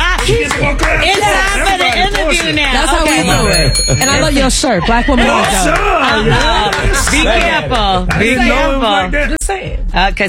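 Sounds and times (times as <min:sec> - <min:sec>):
laughter: 0:00.0 - 0:02.7, 0:03.6 - 0:08.8
hands clapping: 0:00.0 - 0:03.6, 0:05.2 - 0:08.5
speech: 0:00.3 - 0:10.2.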